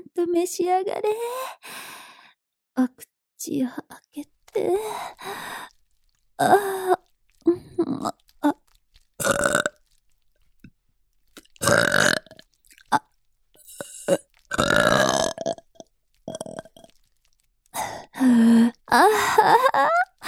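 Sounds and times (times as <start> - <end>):
speech: 0.2 - 1.9, 2.8 - 5.7, 6.4 - 7.0
burping: 5.1 - 19.5.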